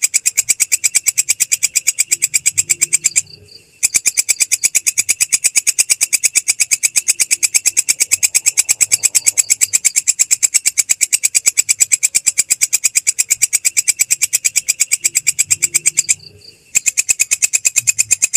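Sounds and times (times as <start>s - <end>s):
grasshopper stridulation: 0.0s - 18.3s.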